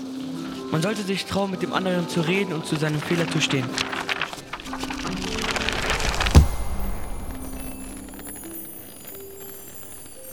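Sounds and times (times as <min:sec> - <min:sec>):
speech: 0:00.7 - 0:04.1
leather-bound diary slamming shut: 0:03.8 - 0:08.5.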